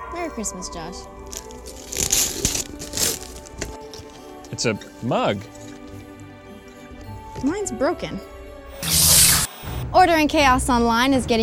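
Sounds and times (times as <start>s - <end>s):
speech: 0.2s - 1.5s, 4.5s - 5.6s, 7.4s - 8.3s, 9.9s - 11.4s
gift wrapping paper being torn open: 1.3s - 3.8s, 8.8s - 9.5s.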